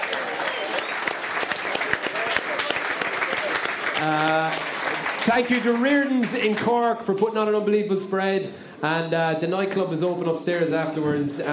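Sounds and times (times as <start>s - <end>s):
crowd applauding: 0.0s - 6.8s
speech: 4.0s - 11.5s.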